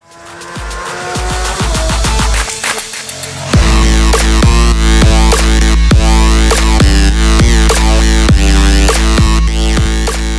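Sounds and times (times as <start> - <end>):
fast car music: 0.0 - 10.3.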